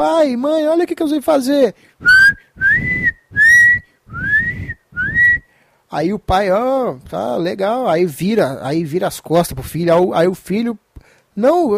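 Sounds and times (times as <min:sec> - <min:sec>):
speech: 0:00.0 - 0:02.4, 0:05.9 - 0:10.8, 0:11.4 - 0:11.7
person whistling rising gliding tones: 0:02.0 - 0:05.5.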